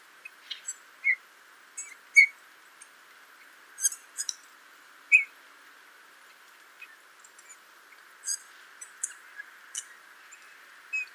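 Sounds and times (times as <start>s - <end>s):
Eurasian bullfinch Pyrrhula pyrrhula calls: 0.2s - 1.2s, 1.8s - 2.4s, 5.1s - 5.3s, 8.2s - 11.1s.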